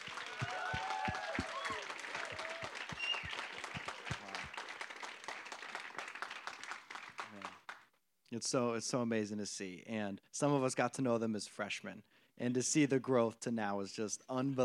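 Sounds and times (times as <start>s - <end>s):
audience applause: 0.0s - 7.8s
speech: 8.4s - 14.6s.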